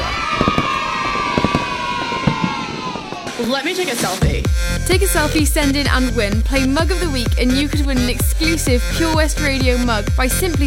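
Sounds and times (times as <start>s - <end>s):
cheering crowd: 0.0s - 4.3s
fireworks bangs: 0.0s - 4.4s
speech: 3.4s - 10.6s.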